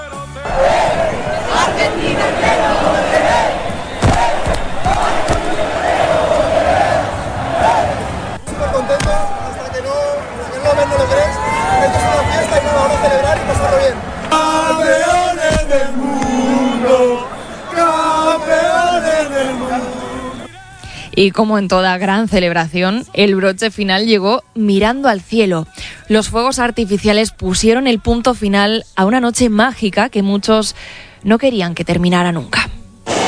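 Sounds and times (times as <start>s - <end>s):
cheering: 0.4s - 20.5s
crowd chanting at street celebration: 0.4s - 20.6s
speech: 21.2s - 32.7s.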